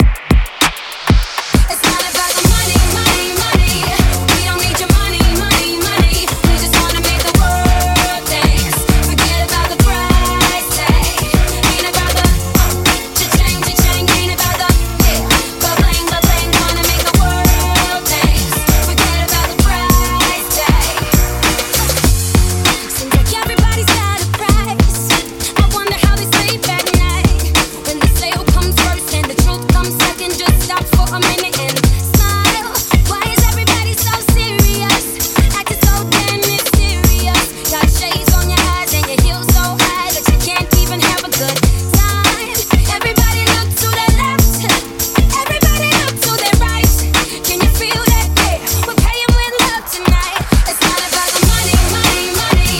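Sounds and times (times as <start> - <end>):
music beat at 98 bpm: 0.0 - 52.7.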